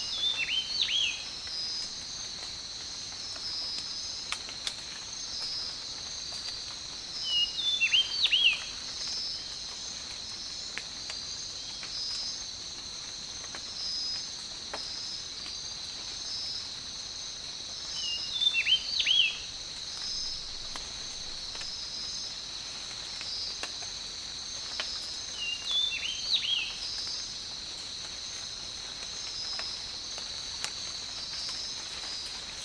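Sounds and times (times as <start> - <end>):
tropical rain: 0.0 - 32.6.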